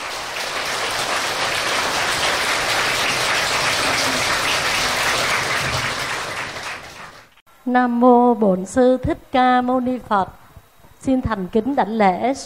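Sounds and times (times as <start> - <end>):
long loud applause from the audience: 0.0 - 7.4
speech: 7.7 - 10.4, 11.0 - 12.4.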